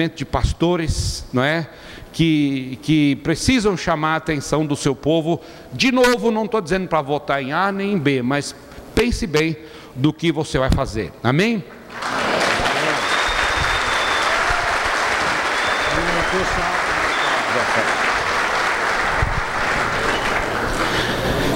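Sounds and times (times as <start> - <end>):
speech: 0.0 - 12.1
audience applause: 11.9 - 21.5
people cheering: 11.9 - 21.5.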